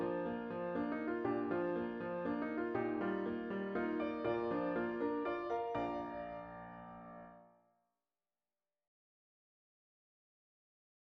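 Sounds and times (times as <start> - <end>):
piano: 0.0 - 7.6.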